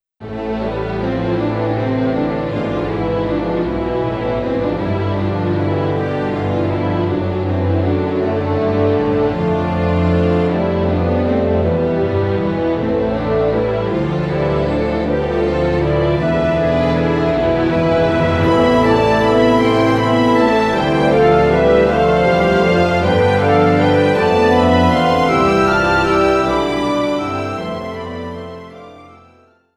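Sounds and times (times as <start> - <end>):
background music: 0.2 - 29.6.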